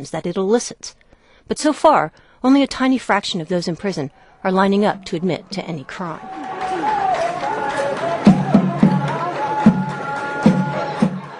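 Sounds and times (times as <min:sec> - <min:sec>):
speech: 0:00.0 - 0:06.5
prison inmates singing for a crowd: 0:06.2 - 0:11.3.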